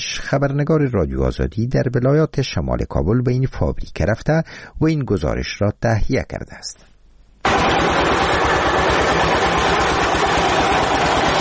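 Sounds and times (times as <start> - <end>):
speech: 0.2 - 6.9
heavy cement factory production machinery running: 7.5 - 11.3.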